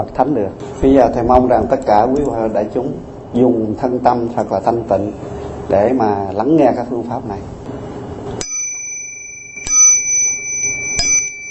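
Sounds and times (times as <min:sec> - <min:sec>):
speech: 0:00.0 - 0:07.8
bell ringing: 0:08.4 - 0:11.4.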